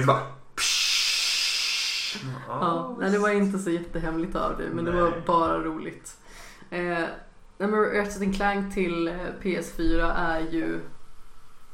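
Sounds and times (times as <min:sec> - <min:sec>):
speech: 0:00.0 - 0:00.8, 0:02.1 - 0:11.0
fizzing hiss of soda bottle being opened: 0:00.6 - 0:02.2.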